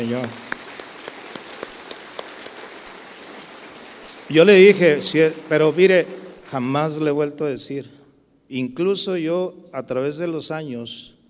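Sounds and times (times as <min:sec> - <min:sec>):
speech: 0:00.0 - 0:00.4, 0:04.3 - 0:11.2
audience applause: 0:00.0 - 0:07.1.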